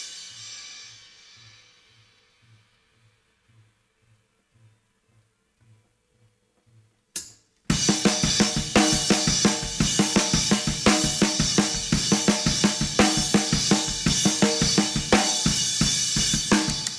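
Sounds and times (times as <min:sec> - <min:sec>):
drums: 0:00.0 - 0:03.8, 0:07.2 - 0:16.9.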